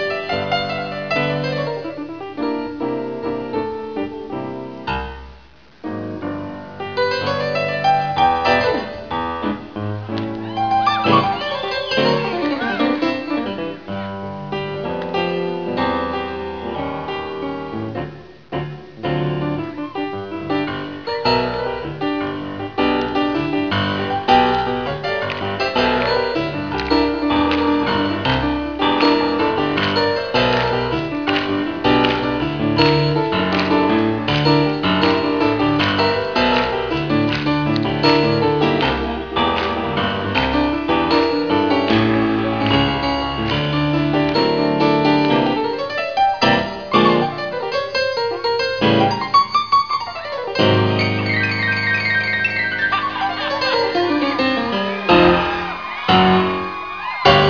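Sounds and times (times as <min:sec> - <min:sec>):
piano: 0:00.0 - 0:57.4.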